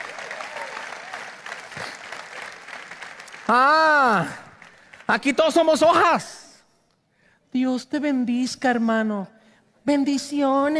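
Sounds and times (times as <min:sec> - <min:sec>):
audience applauding: 0:00.0 - 0:05.9
speech: 0:03.5 - 0:04.4, 0:05.1 - 0:06.4, 0:07.5 - 0:10.7.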